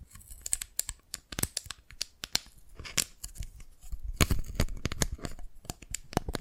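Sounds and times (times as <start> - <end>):
Dalgona candy tapped and cracked: 0.2 - 3.6, 4.2 - 6.3.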